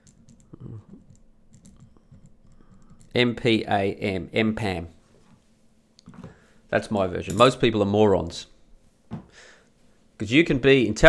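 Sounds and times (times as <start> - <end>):
typing on a computer keyboard: 0.0 - 3.2
speech: 3.2 - 5.0, 6.7 - 8.5, 10.2 - 11.0.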